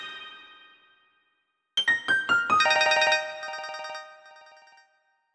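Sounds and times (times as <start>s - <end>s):
old mobile phone ringtone: 1.8s - 4.8s.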